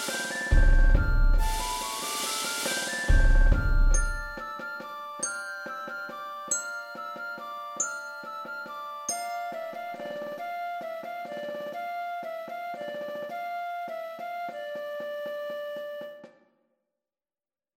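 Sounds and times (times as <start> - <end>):
drum kit playing: 0.0 - 4.5.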